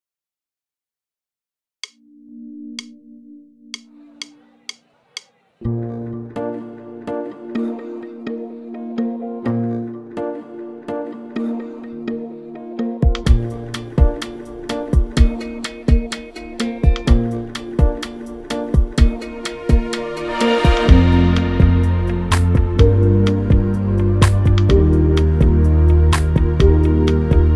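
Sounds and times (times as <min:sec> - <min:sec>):
music beat: 0:01.8 - 0:02.1, 0:02.7 - 0:03.0, 0:03.7 - 0:27.5.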